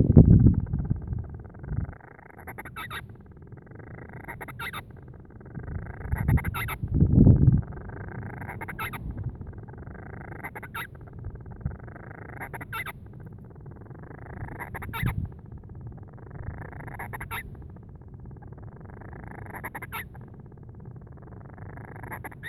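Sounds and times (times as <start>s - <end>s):
Band-rumped Storm Petrel Oceanodroma castro calling: 0.0s - 22.4s.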